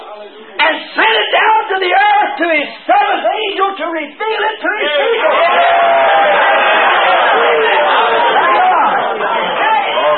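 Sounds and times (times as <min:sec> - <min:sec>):
speech: 0:00.2 - 0:06.4
crowd screaming: 0:04.8 - 0:10.1.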